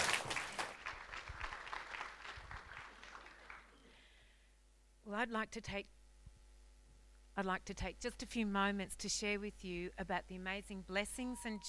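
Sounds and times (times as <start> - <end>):
audience applause: 0.0 - 3.8
speech: 5.1 - 6.0, 7.4 - 11.6.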